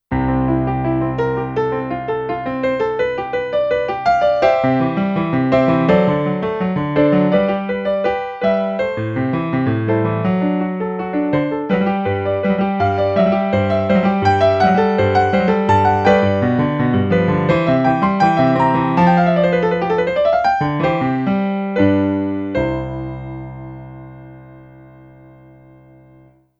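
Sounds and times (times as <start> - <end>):
classical prelude in C major: 0.1 - 26.4.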